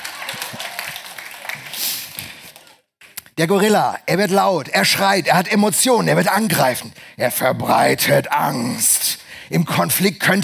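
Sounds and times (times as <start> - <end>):
applause: 0.0 - 3.2
speech: 3.4 - 8.9, 9.5 - 10.4.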